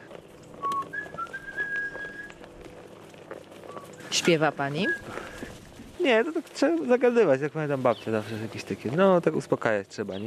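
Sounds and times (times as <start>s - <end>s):
man whistling to himself: 0.6s - 2.4s
speech: 4.1s - 5.2s, 6.0s - 10.2s.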